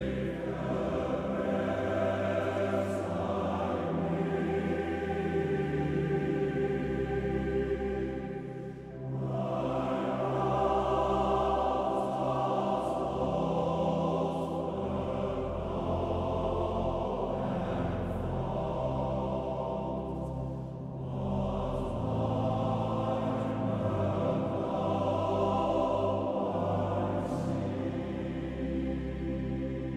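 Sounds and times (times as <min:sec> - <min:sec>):
male choir singing: 0:00.0 - 0:29.9.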